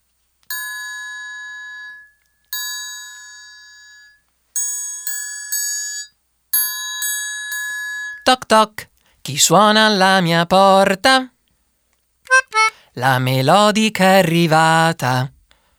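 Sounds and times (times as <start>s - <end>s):
triangle being played: 0.5s - 8.4s
speech: 8.3s - 11.3s, 12.3s - 15.3s.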